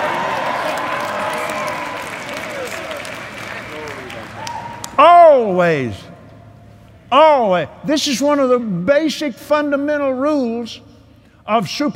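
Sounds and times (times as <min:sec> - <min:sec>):
audience applause: 0:00.0 - 0:05.0
speech: 0:05.4 - 0:06.1, 0:07.1 - 0:10.9, 0:11.5 - 0:11.9.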